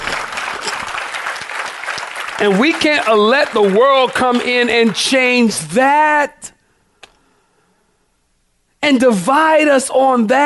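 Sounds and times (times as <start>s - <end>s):
audience clapping: 0.0s - 5.7s
speech: 2.4s - 6.5s, 8.8s - 10.4s.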